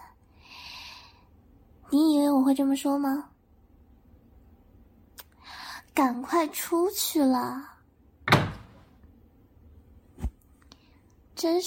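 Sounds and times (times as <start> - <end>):
speech: 1.9 - 3.3, 6.0 - 7.7, 11.4 - 11.6
door closing: 8.2 - 8.9.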